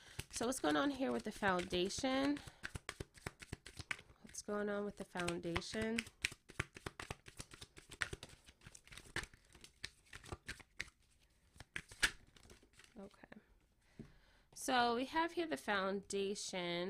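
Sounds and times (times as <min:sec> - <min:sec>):
tarot cards being handled and sorted: 0:00.0 - 0:13.0
speech: 0:00.4 - 0:02.6, 0:04.5 - 0:06.2, 0:14.7 - 0:16.8.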